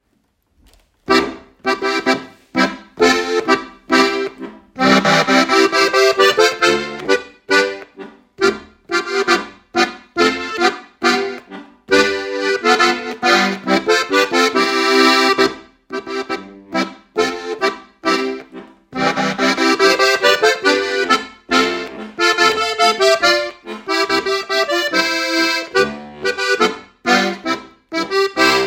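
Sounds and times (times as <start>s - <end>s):
Bavarian boarischer folk dance music: 1.0s - 28.6s.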